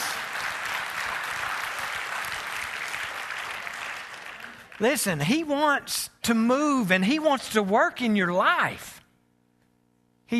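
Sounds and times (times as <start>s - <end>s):
audience applause: 0.0s - 5.0s
speech: 4.8s - 9.0s.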